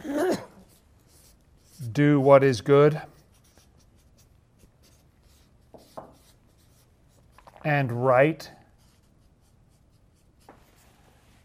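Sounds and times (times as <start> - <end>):
handwriting with a pen or pencil: 0.6 - 1.9, 3.1 - 7.7, 8.8 - 11.4
speech: 2.0 - 3.1, 7.6 - 8.6.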